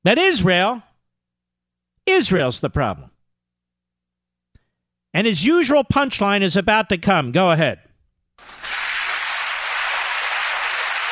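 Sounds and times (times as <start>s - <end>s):
speech: 0.0s - 0.9s, 2.1s - 3.1s, 5.2s - 7.8s
audience cheering: 8.4s - 11.1s.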